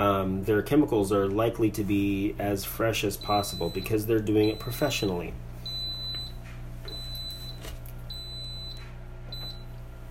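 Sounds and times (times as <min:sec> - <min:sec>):
speech: 0:00.0 - 0:05.5
Instapot beeping: 0:03.2 - 0:05.0, 0:05.7 - 0:09.7.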